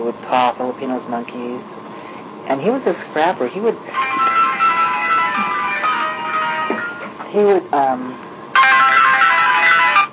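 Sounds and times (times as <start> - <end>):
speech: 0.1 - 1.8, 2.5 - 4.2, 7.4 - 8.2
mobile phone ringtone: 3.9 - 7.1, 8.6 - 10.1.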